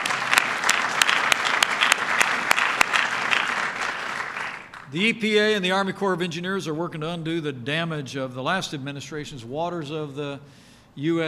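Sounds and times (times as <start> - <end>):
audience applause: 0.0 - 4.9
speech: 4.9 - 11.2.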